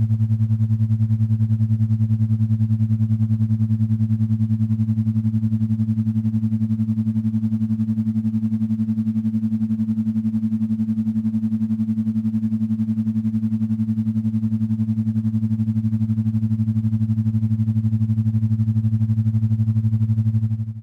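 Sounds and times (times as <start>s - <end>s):
7.83 to 12 Hz meditation tone: 0.0s - 20.8s.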